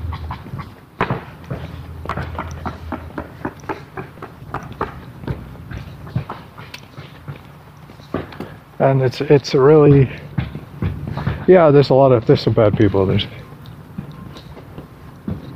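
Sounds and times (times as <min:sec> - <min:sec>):
roofer hammering on a roof: 0:00.9 - 0:07.5, 0:09.6 - 0:13.4
speech: 0:08.8 - 0:10.2, 0:11.5 - 0:13.4.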